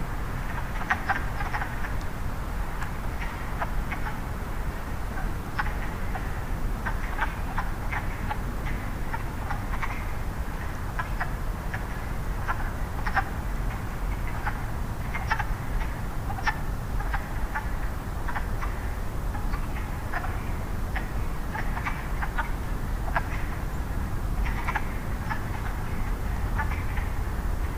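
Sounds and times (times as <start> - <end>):
water: 0.1 - 27.7
wood frogs calling: 0.4 - 2.0, 2.6 - 27.7
peepers calling: 6.9 - 27.7.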